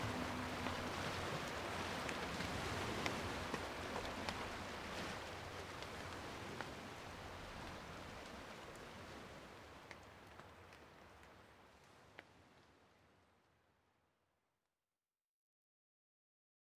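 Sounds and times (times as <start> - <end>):
rain forest canyon ambience: 0.0 - 13.9.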